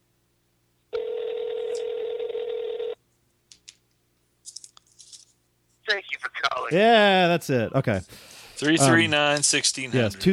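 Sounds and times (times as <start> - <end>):
telephone dial tone: 0.9 - 3.0
speech: 6.7 - 10.3.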